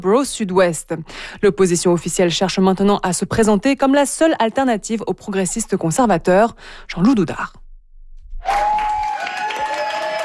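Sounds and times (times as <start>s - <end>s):
speech: 0.0s - 7.6s, 8.4s - 9.0s
applause from colleagues: 8.4s - 10.2s.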